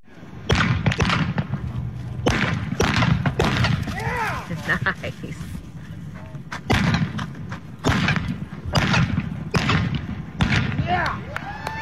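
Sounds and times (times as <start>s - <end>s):
low rumbling background: 0.1s - 11.4s
gunshots in the sport of mounted shooting: 0.4s - 4.3s, 6.6s - 11.0s.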